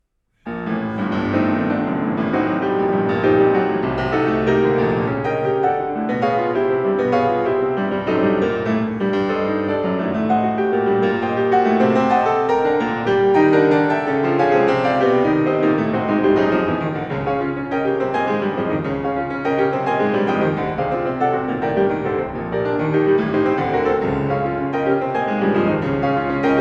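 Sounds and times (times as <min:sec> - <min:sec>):
classical prelude in G minor played molto agitato: 0:00.5 - 0:26.6.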